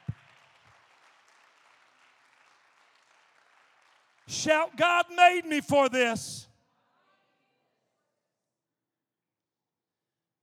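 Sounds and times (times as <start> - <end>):
audience clapping hands: 0.0 - 6.4
speech: 4.3 - 6.5.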